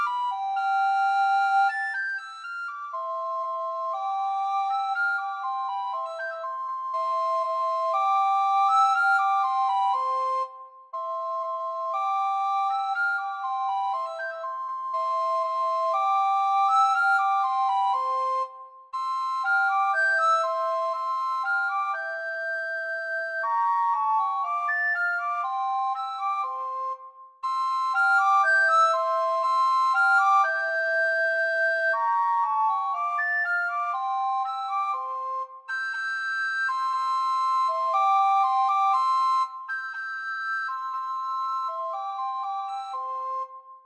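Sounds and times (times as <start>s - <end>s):
recorder duet: 0.0s - 43.6s.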